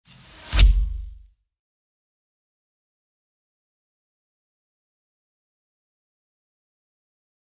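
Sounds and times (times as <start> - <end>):
arrow: 0.1 - 1.3.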